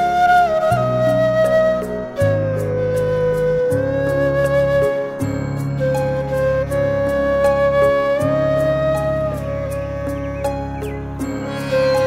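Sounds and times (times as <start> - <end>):
flute in instrumental music: 0.0 - 12.0
violin in instrumental music: 10.3 - 12.0.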